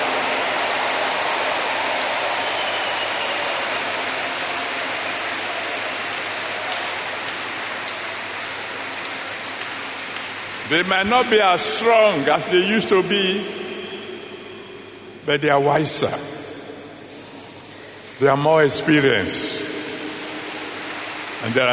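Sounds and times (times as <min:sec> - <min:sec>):
audience applause for the elders: 0:00.0 - 0:13.1, 0:19.5 - 0:21.7
speech: 0:10.7 - 0:13.6, 0:15.3 - 0:16.4, 0:18.2 - 0:19.5, 0:21.4 - 0:21.7.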